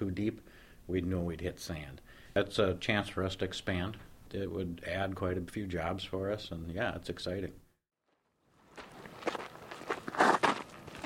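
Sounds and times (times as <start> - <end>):
speech: 0.0 - 7.6
footsteps on crushed limestone slope: 8.1 - 11.0.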